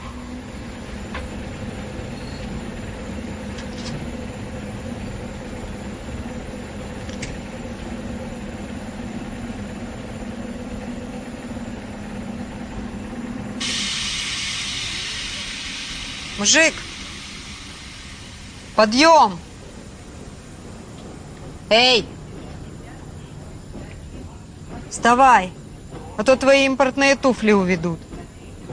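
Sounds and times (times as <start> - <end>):
steam hissing at a railway station: 0.0 - 21.8
speech: 16.4 - 16.8, 18.8 - 19.5, 21.7 - 22.1, 25.0 - 25.6, 26.2 - 28.1.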